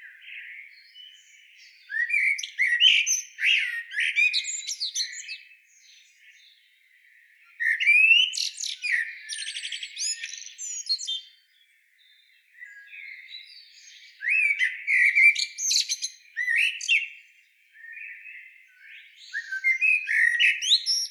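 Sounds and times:
Eurasian blackbird Turdus merula singing fluty whistled phrases: 0.0 - 21.0.

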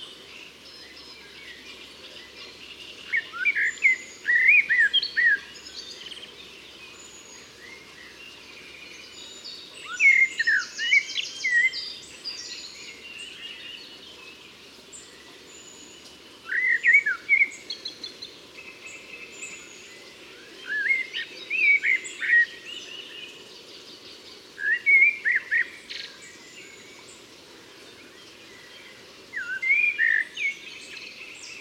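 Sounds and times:
common blackbird singing: 0.0 - 27.2, 27.9 - 31.5
other birds chirping: 0.0 - 31.5
soft background hiss: 0.0 - 31.5.

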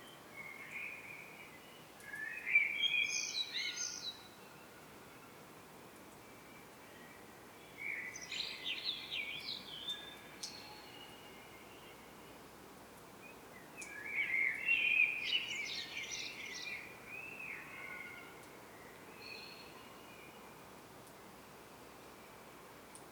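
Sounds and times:
common blackbird Turdus merula song: 0.0 - 4.7, 6.5 - 12.1, 13.2 - 20.4.

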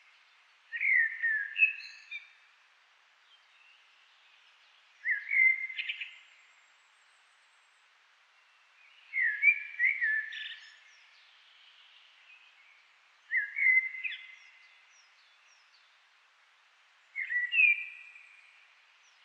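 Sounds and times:
common blackbird Turdus merula singing: 0.7 - 2.3, 5.0 - 6.2, 8.9 - 12.7, 13.3 - 15.8, 17.1 - 19.2.

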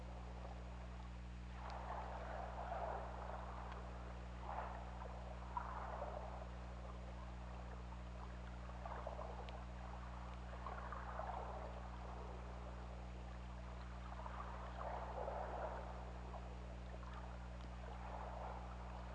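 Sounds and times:
sperm whale clicks: 0.1 - 19.1.

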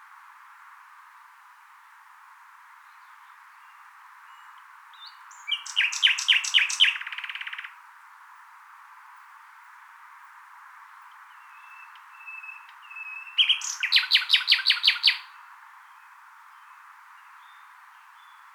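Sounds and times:
common nightingale song: 2.7 - 7.8, 10.8 - 18.5.

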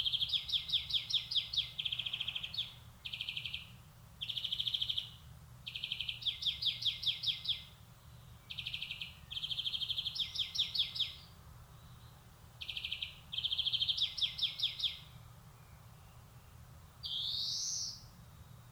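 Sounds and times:
European greenfinch Chloris chloris song of buzzy trills and twittering: 0.0 - 7.7, 8.4 - 16.2, 17.0 - 18.1.

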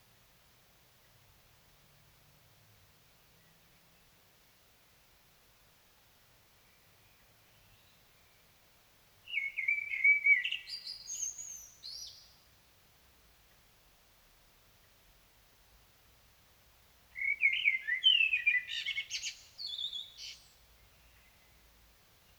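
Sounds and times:
Common blackbird singing: 9.3 - 12.4, 17.2 - 21.6.

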